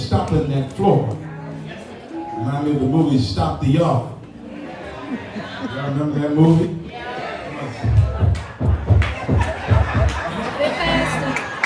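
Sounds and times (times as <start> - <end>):
speech: 0.1 - 1.3, 2.4 - 4.1, 5.1 - 7.9
laughter: 4.4 - 11.6
audience applauding: 7.9 - 11.6.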